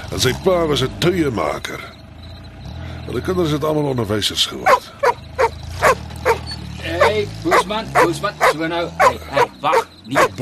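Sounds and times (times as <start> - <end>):
speech: 0.1 - 2.0, 3.1 - 5.0, 7.1 - 10.4
mongrel dog barking and yipping: 4.6 - 10.4.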